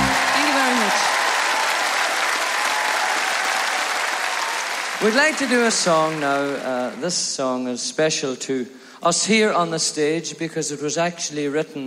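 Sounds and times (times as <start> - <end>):
audience applause welcoming a singer on stage: 0.0 - 7.2
speech: 5.0 - 11.8.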